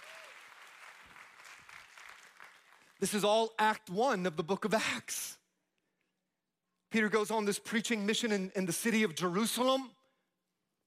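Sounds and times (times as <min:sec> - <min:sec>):
audience clapping in praise: 0:00.0 - 0:03.0
speech: 0:03.0 - 0:05.4, 0:06.9 - 0:10.0.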